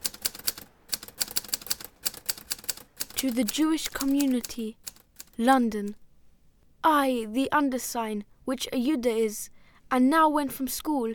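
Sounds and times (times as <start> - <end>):
typewriter typing out a letter: 0.0 - 6.0
speech: 3.2 - 4.8, 5.4 - 6.0, 6.8 - 11.1.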